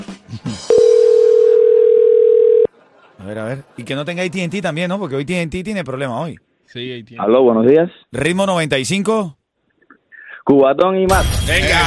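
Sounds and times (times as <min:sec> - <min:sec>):
telephone ring tone: 0:00.7 - 0:02.7
speech: 0:03.4 - 0:09.4, 0:10.4 - 0:11.8.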